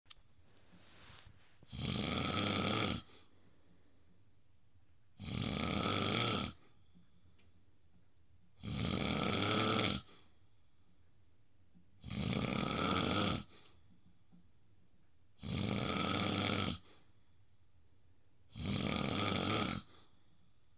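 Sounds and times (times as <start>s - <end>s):
loud snoring: 1.7s - 3.3s, 5.2s - 6.8s, 8.6s - 10.3s, 12.0s - 13.7s, 15.4s - 17.0s, 18.5s - 20.0s.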